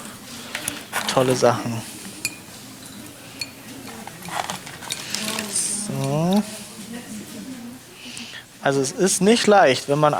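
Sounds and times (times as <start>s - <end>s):
metal utensils clinking and scraping inside a glass jar: 0.0s - 6.6s
speech: 1.2s - 2.0s, 8.6s - 10.1s.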